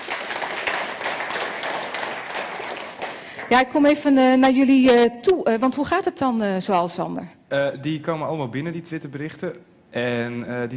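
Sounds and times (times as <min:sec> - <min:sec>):
crowd applauding: 0:00.0 - 0:03.8
speech: 0:03.5 - 0:10.7.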